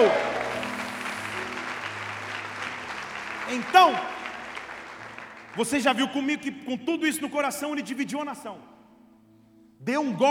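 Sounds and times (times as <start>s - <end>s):
audience applause: 0.0s - 6.4s
speech: 3.5s - 4.1s, 5.6s - 8.7s, 9.8s - 10.2s.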